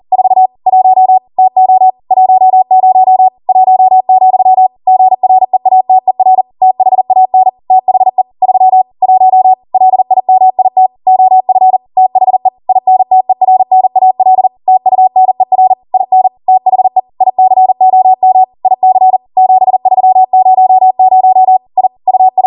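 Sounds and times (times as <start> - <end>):
Morse code practice beeps: 0.1 - 22.4.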